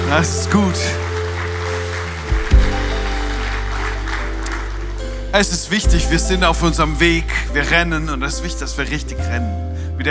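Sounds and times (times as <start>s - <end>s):
audience applause: 0.0s - 5.9s
speech: 0.1s - 1.1s, 5.3s - 10.0s.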